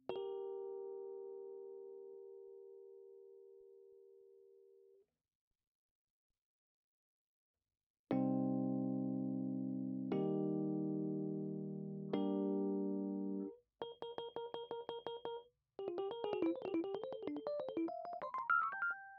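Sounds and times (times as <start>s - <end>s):
Rhodes electric piano: 0.0s - 4.3s, 8.1s - 19.1s.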